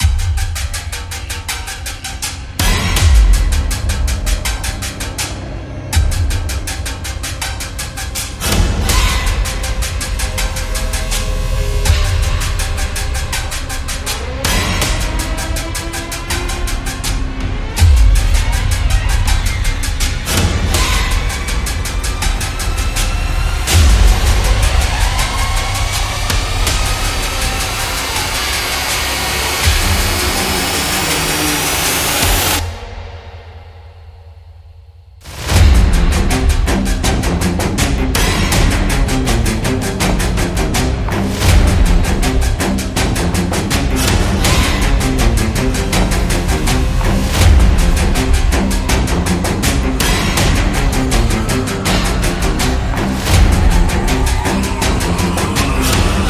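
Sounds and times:
slasher horror sound effect: 2.0 - 34.6, 35.2 - 56.2.

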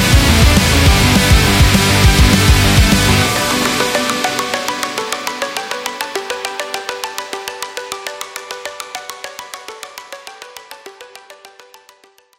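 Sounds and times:
aggressive rock music: 0.0 - 7.5.

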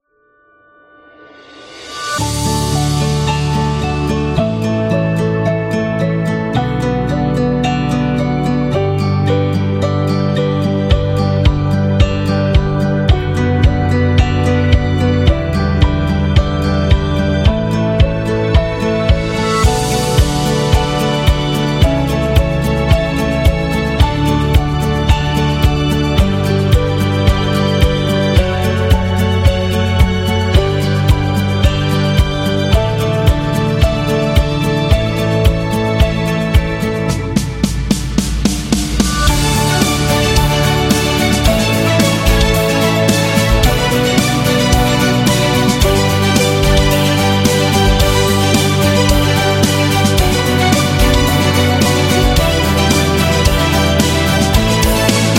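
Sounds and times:
cinematic love music: 1.0 - 55.3.

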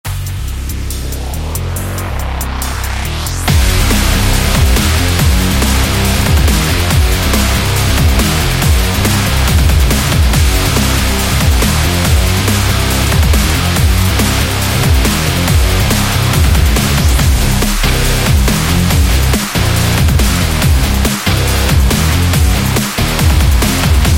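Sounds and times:
dubstep rock music: 0.1 - 24.1.

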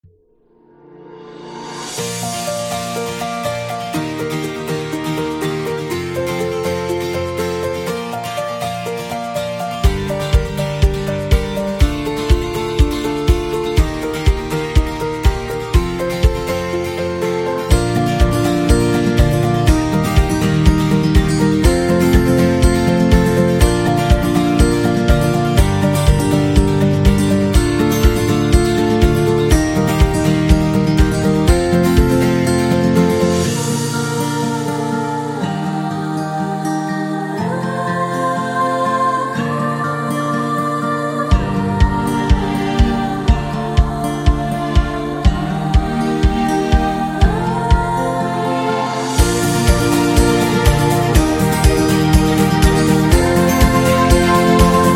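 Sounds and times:
upbeat acoustic music: 1.9 - 54.9.

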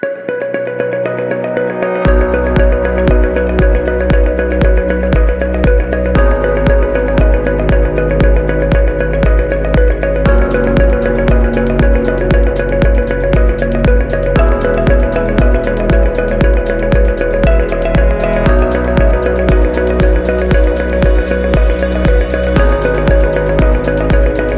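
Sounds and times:
corporate business presentation music: 0.0 - 24.5.

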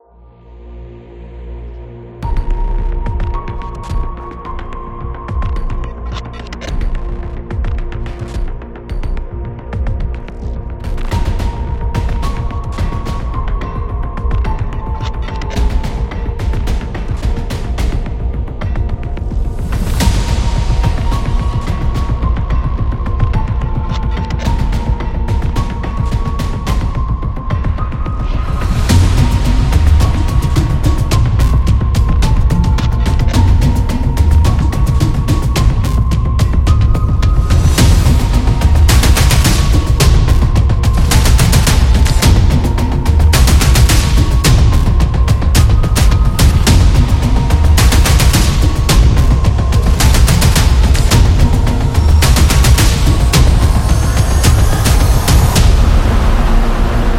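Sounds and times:
suspense music: 0.0 - 57.1.

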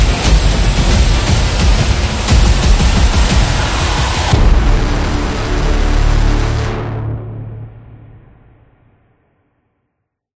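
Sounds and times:
tribal drums: 0.0 - 6.5.

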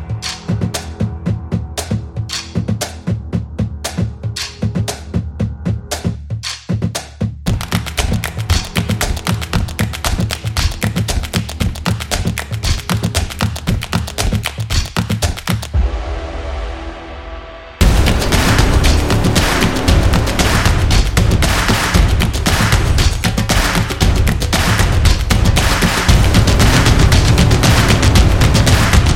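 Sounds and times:
energetic drumming: 0.0 - 15.9, 17.8 - 29.1
intro clap: 7.0 - 15.8, 18.4 - 29.1.

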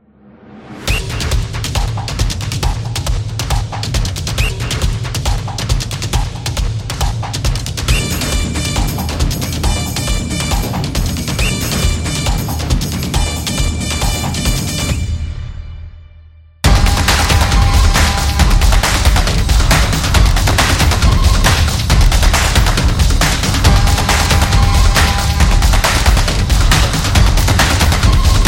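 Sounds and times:
football music: 0.9 - 16.0, 16.6 - 28.4.

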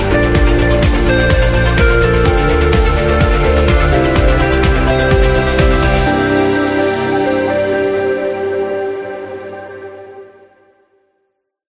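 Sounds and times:
luxury beat: 0.0 - 9.1.

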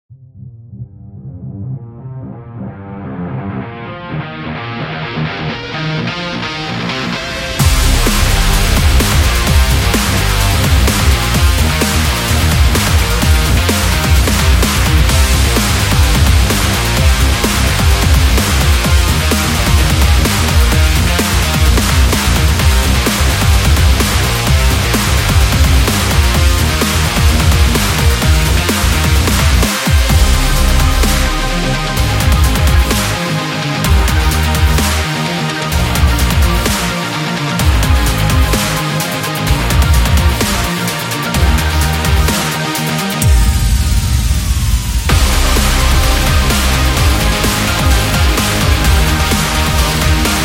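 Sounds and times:
racing rock music: 1.8 - 50.4.

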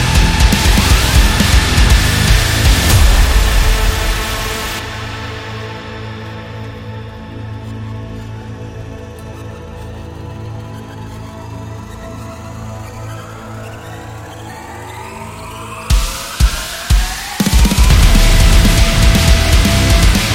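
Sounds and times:
HIIT metal music: 0.0 - 7.9, 15.9 - 20.3.

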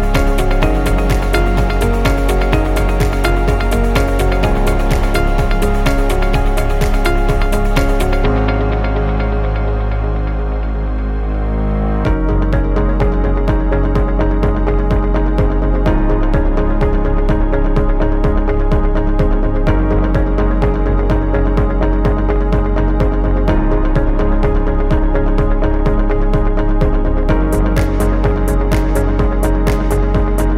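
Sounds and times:
upbeat corporate music loop: 0.0 - 30.5.

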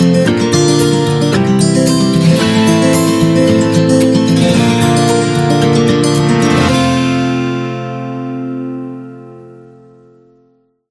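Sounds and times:
upbeat wedding music: 0.0 - 8.1.

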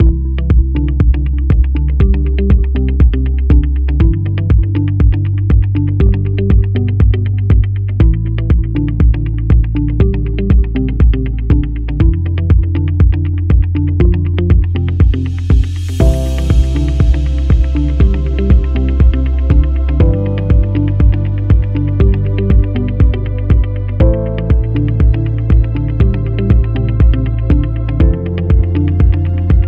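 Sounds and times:
corporate music: 0.0 - 29.6.

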